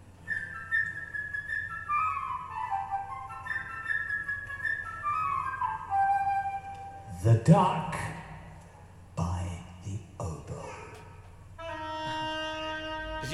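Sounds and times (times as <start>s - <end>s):
flute melody: 0.0s - 7.2s, 11.6s - 13.3s
low steady hum: 0.0s - 13.3s
speech: 7.2s - 8.1s.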